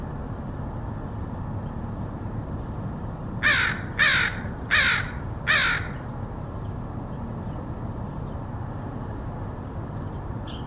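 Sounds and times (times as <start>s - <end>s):
low steady rumble: 0.0s - 10.6s
crow cawing: 3.4s - 6.1s.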